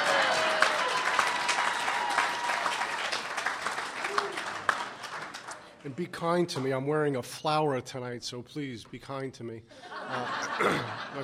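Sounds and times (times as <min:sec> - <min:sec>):
audience clapping: 0:00.0 - 0:06.8
speech: 0:05.8 - 0:11.2
laughter: 0:09.8 - 0:11.2.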